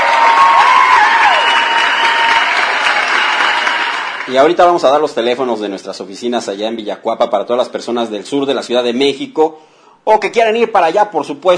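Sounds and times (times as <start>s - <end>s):
dense applause from many hands: 0.0s - 4.8s
speech: 4.3s - 11.5s.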